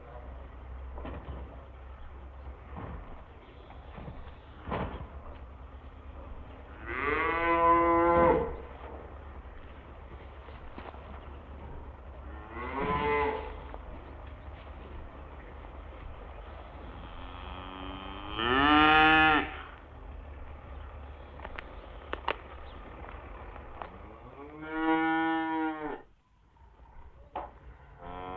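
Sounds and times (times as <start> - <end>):
low steady hum: 0.0 - 28.3
cattle mooing: 6.7 - 8.6, 12.2 - 13.7, 16.7 - 19.8, 24.1 - 26.1, 28.0 - 28.3
sharp clicks: 21.4 - 23.2.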